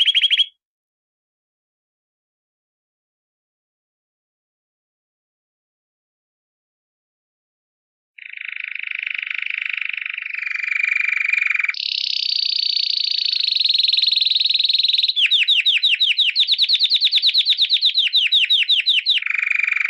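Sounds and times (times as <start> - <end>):
canary song of buzzy trills and whistled notes: 0.0 - 0.6, 8.2 - 19.8.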